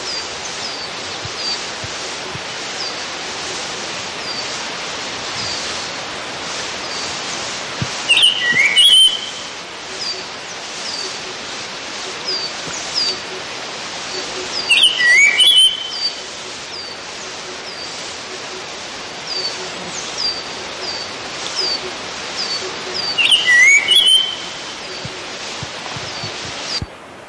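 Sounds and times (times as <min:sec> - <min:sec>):
steady hiss: 0:00.0 - 0:27.2
Black-headed hawfinch whistled phrase: 0:08.1 - 0:09.4, 0:14.6 - 0:16.1, 0:23.0 - 0:24.6.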